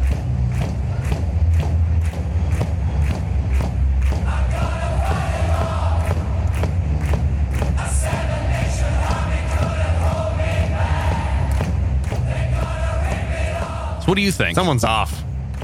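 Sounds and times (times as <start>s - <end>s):
huge stadium crowd slapping their chests: 0.0s - 15.6s
stadium crowd chanting and singing: 4.0s - 15.6s
speech: 14.1s - 15.0s.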